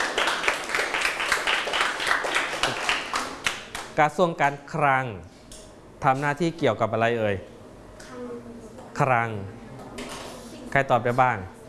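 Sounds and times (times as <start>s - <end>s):
classroom clapping: 0.0s - 4.0s
speech: 4.0s - 5.4s, 6.0s - 7.5s, 9.0s - 9.6s, 10.7s - 11.6s.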